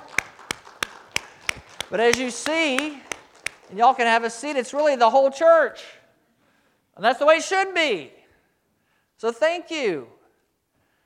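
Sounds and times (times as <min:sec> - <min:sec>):
hand claps: 0:00.0 - 0:04.0
speech: 0:01.9 - 0:03.1, 0:03.7 - 0:06.0, 0:07.0 - 0:08.2, 0:09.2 - 0:10.2.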